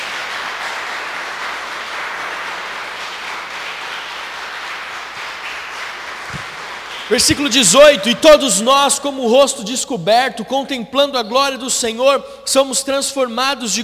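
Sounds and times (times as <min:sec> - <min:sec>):
audience applause: 0:00.0 - 0:07.8
speech: 0:07.1 - 0:13.8.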